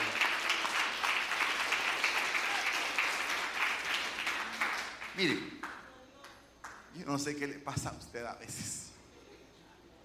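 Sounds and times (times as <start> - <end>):
audience applauding: 0.0 - 5.8
speech: 5.2 - 5.6, 7.0 - 8.8.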